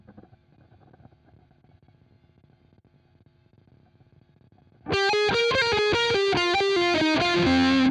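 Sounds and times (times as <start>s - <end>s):
guitar: 4.8s - 7.9s.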